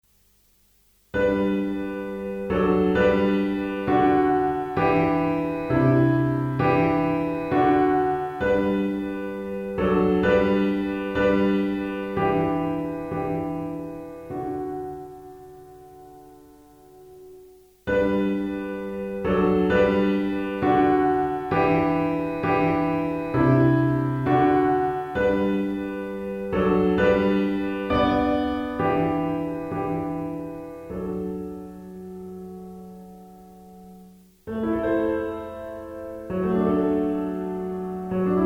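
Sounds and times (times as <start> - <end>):
pop piano: 1.2 - 38.4.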